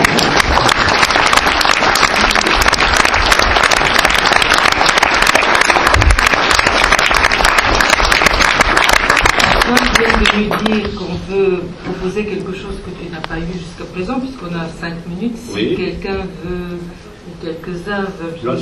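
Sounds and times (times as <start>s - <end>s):
audience applauding loudly: 0.0s - 10.9s
speech: 11.6s - 18.6s.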